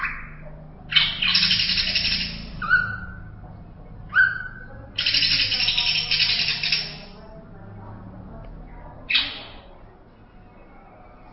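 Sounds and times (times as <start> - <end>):
greater green leafbird song: 0.0 - 3.4, 4.1 - 7.2, 9.1 - 9.7.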